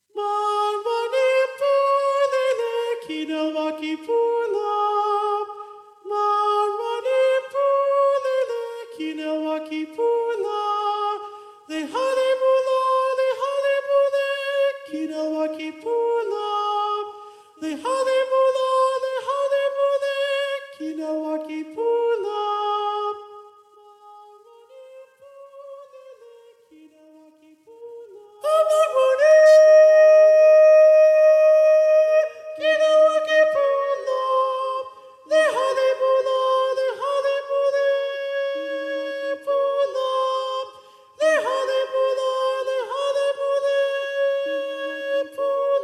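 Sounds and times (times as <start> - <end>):
soprano singing: 0.0 - 45.8.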